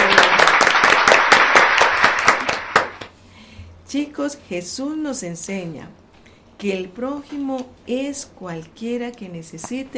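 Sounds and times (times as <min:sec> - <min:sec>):
audience applause: 0:00.0 - 0:03.1
speech: 0:03.9 - 0:06.0, 0:06.6 - 0:09.9.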